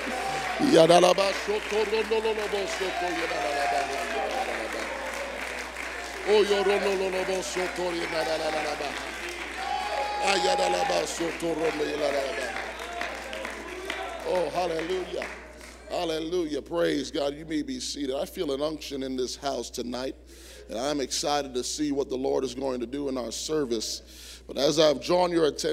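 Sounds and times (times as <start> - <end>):
audience clapping hands in church: 0.0 - 16.3
speech: 0.6 - 3.9, 6.3 - 9.2, 10.2 - 12.6, 14.3 - 25.7.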